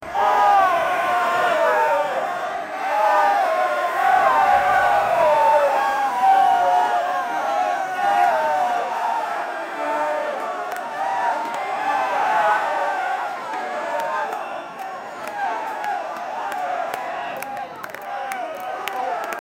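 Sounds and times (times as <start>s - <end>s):
enthusiastic crowd chanting a word: 0.0s - 19.4s.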